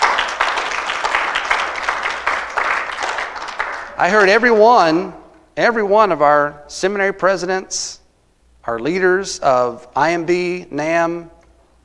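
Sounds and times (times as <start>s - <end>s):
audience clapping: 0.0s - 5.0s
speech: 4.0s - 8.0s, 8.6s - 11.4s.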